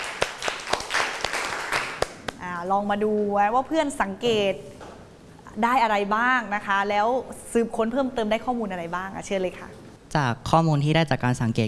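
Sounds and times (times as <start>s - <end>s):
classroom applause: 0.0s - 2.3s
speech: 2.6s - 4.8s, 5.6s - 11.6s.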